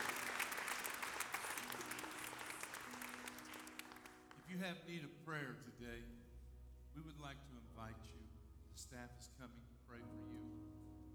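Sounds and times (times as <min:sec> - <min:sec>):
audience clapping hands: 0:00.0 - 0:04.6
speech: 0:04.5 - 0:06.3, 0:06.9 - 0:10.9.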